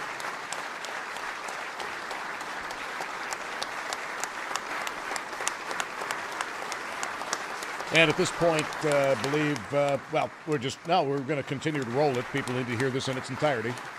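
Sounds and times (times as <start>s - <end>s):
crowd thunderous applause in the East Room: 0.0s - 13.9s
speech: 7.9s - 13.9s.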